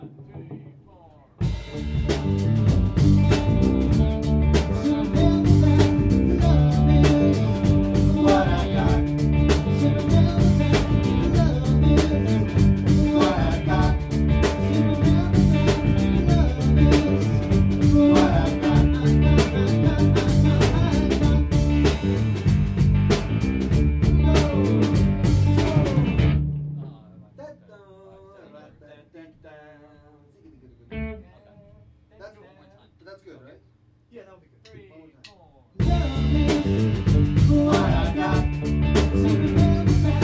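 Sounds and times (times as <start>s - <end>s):
music medley: 1.4s - 27.4s, 35.8s - 40.2s.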